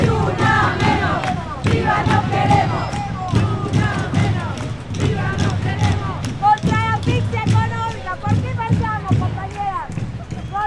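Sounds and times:
Ni Una Menos protest crowd chanting against femicide: 0:00.0 - 0:06.8
evenly spaced percussive hits at a demonstration: 0:00.0 - 0:10.4.

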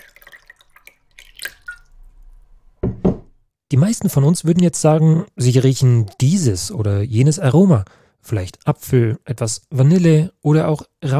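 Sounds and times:
whisky poured into a glass: 0:00.0 - 0:02.4, 0:05.4 - 0:06.7
sudden low thump: 0:02.8 - 0:03.4
speech: 0:03.7 - 0:11.1.

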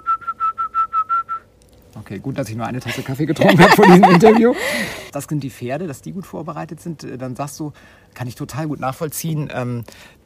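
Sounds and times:
person whistling to cue horse urination: 0:00.0 - 0:01.5
speech: 0:02.0 - 0:10.2
laughter: 0:02.8 - 0:05.0.

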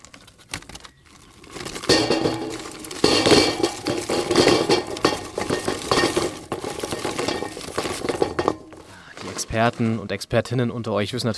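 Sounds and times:
clinking while firing up a grill: 0:01.5 - 0:09.8
speech: 0:09.5 - 0:11.3.

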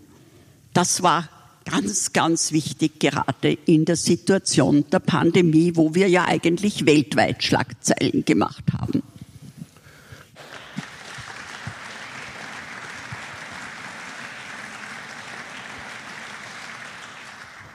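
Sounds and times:
speech: 0:00.8 - 0:08.8
applause: 0:10.4 - 0:17.7.

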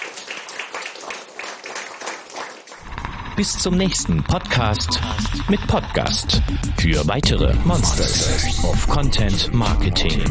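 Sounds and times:
crowd applauding: 0:00.0 - 0:05.7
speech: 0:03.4 - 0:10.2.

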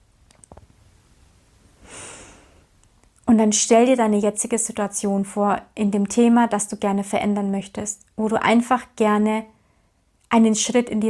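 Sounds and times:
deep breath during a guided relaxation exercise: 0:01.8 - 0:02.7
speech: 0:03.3 - 0:09.5, 0:10.3 - 0:11.0.

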